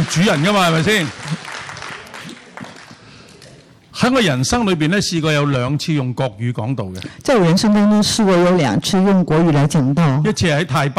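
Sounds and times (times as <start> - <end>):
church congregation clapping to welcome guests: 0.0 - 3.7
speech: 0.1 - 1.5, 4.0 - 10.9.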